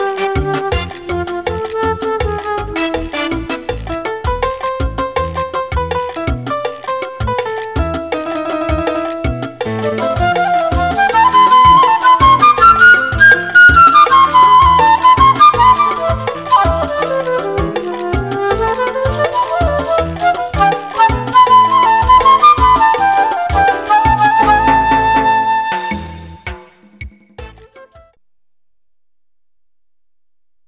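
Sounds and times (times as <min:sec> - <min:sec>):
saxophone: 0:00.0 - 0:05.4, 0:07.8 - 0:26.6
salsa music: 0:00.0 - 0:28.1.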